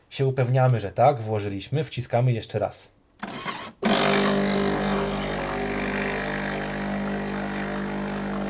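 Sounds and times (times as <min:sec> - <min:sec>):
speech: 0:00.2 - 0:03.0
espresso machine rinsing its milk frother: 0:03.9 - 0:08.4.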